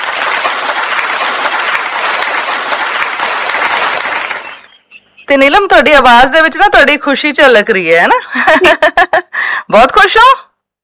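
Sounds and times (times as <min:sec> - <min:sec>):
audience clapping for a quiz contestant: 0:00.0 - 0:04.8
speech: 0:05.3 - 0:10.4.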